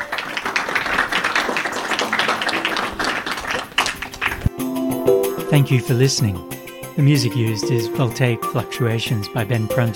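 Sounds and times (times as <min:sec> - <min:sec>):
audience applause: 0:00.0 - 0:04.5
speech: 0:05.5 - 0:09.9.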